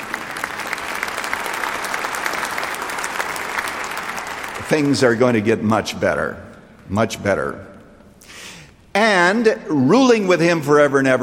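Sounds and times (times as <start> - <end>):
crowd applauding: 0.0 - 5.4
speech: 4.7 - 7.7, 9.0 - 11.2.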